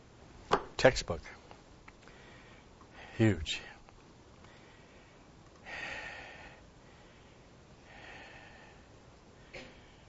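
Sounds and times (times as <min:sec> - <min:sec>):
speech: 0:00.8 - 0:01.4, 0:03.2 - 0:03.7
person breathing audibly into a microphone: 0:02.0 - 0:03.8, 0:04.4 - 0:10.0.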